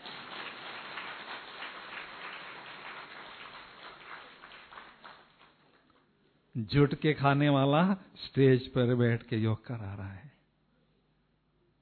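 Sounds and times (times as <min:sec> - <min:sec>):
audience clapping: 0:00.0 - 0:06.0
speech: 0:06.6 - 0:10.3.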